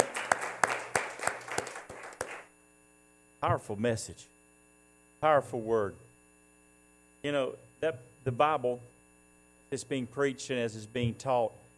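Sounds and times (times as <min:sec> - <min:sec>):
congregation clapping hands in praise: 0:00.0 - 0:02.5
speech: 0:03.4 - 0:04.4, 0:05.2 - 0:06.0, 0:07.2 - 0:08.9, 0:09.7 - 0:11.6.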